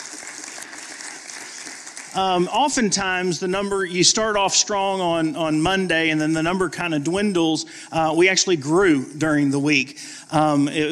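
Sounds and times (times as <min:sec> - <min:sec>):
audience applause: 0:00.0 - 0:03.2
speech: 0:02.1 - 0:10.9.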